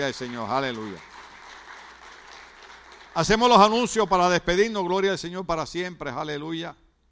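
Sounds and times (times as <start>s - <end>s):
speech: 0.0s - 1.2s, 3.2s - 6.8s
audience applause: 0.0s - 3.9s.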